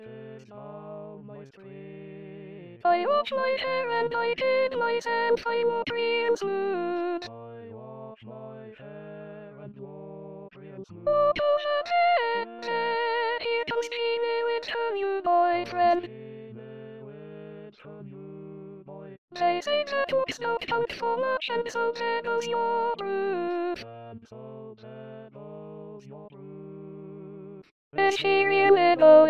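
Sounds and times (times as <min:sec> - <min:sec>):
soprano singing: 0:02.9 - 0:07.3, 0:11.1 - 0:16.1, 0:19.4 - 0:23.8, 0:28.0 - 0:29.2.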